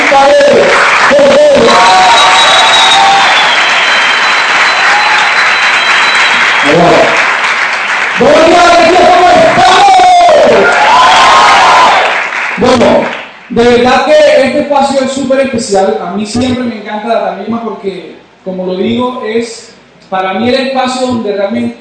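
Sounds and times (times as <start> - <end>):
crowd cheering with whoops and excited shouts: 0.0 - 7.0, 8.2 - 12.2
audience applauding loudly: 0.0 - 13.4
speech: 0.1 - 2.0, 13.6 - 21.7.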